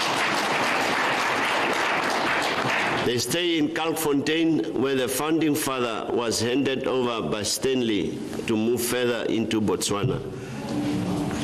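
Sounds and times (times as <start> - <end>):
audience applause at a community event: 0.0 - 3.1
speech: 3.1 - 10.9.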